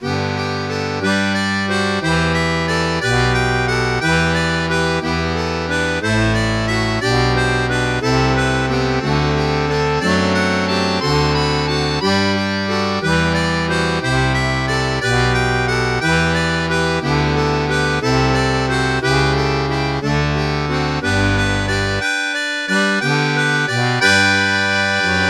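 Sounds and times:
harmonica: 0.0 - 25.2.

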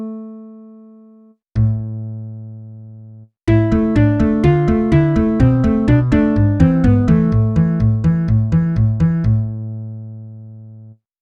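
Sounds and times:
acoustic bass: 1.6 - 2.4, 3.5 - 9.7.

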